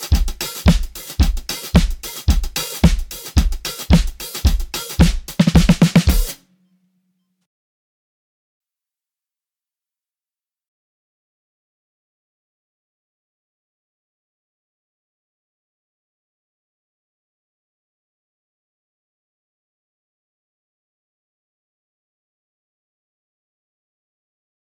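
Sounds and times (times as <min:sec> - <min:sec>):
real acoustic drums: 0:00.0 - 0:06.4.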